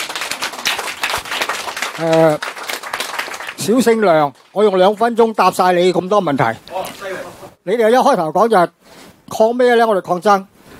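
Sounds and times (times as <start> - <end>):
audience applause: 0.0 - 4.6
speech: 2.0 - 2.5, 3.6 - 10.5.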